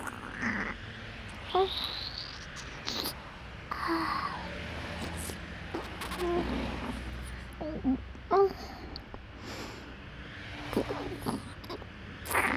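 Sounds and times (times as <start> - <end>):
wet mouth sounds in right ear: 0.0 - 0.7, 1.3 - 3.8, 5.0 - 7.9, 10.7 - 12.5
national highway traffic: 0.0 - 12.5.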